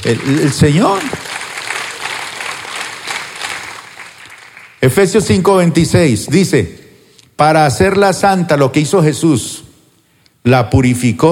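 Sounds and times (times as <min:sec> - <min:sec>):
audience applause: 0:00.0 - 0:04.8
speech: 0:00.1 - 0:01.2, 0:04.8 - 0:06.8, 0:07.4 - 0:09.6, 0:10.4 - 0:11.3.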